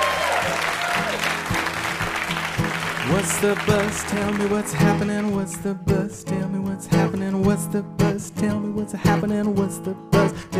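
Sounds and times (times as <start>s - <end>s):
studio audience applause for a quiz show guest: 0.0s - 5.3s
speech: 3.1s - 10.5s.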